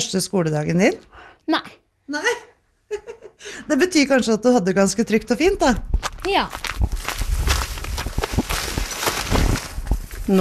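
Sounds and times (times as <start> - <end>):
speech: 0.1 - 7.0, 10.3 - 10.4
boy's footsteps walking up to school: 5.4 - 10.4
rustling: 5.6 - 10.4.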